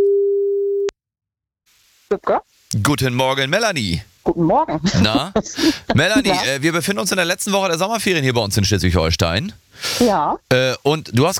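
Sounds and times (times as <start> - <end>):
telephone line tone as a call connects: 0.0 - 0.9
speech: 2.1 - 11.3.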